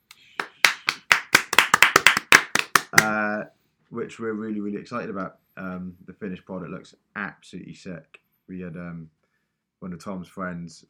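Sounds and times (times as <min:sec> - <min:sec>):
applause sound effect hand claps: 0:00.0 - 0:03.2
speech: 0:02.9 - 0:09.2, 0:09.8 - 0:10.8.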